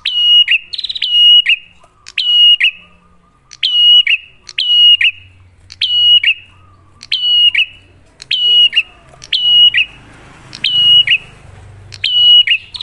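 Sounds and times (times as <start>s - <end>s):
prinia rattling whistled song: 0.0s - 12.8s.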